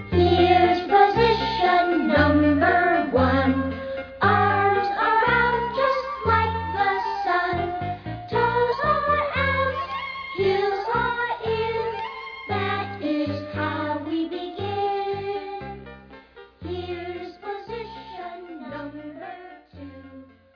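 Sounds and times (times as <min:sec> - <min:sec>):
vocals: 0:00.2 - 0:15.8, 0:16.6 - 0:20.4.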